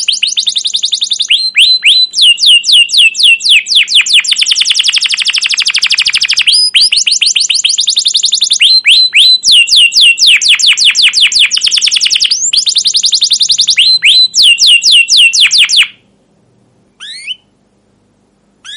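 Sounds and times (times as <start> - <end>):
canary singing long excited phrases: 0.0 - 16.1, 17.0 - 17.6.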